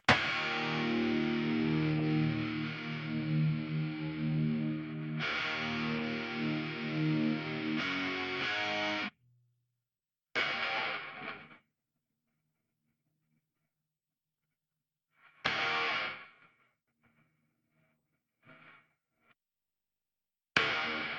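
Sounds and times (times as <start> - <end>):
guitar: 0.0 - 9.1, 10.4 - 11.6, 15.2 - 16.6, 20.6 - 21.1.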